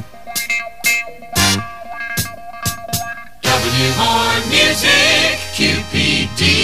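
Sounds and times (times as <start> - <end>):
jingle: 0.1 - 6.5.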